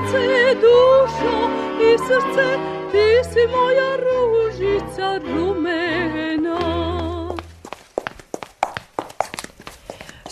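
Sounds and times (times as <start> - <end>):
speech: 0.1 - 6.8
handmade slippers tapping in a slipper-maker's workshop in Subotica: 6.2 - 10.2.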